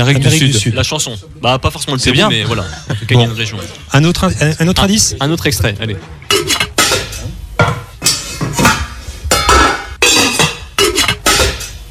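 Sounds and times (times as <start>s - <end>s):
speech: 0.0s - 6.6s
pots and pans clanking in kitchen: 6.3s - 11.9s.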